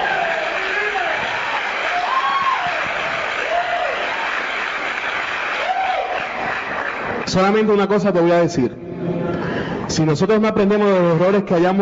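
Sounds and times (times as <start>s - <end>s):
audience applause: 0.0s - 7.6s
speech: 7.3s - 8.8s, 9.9s - 11.8s.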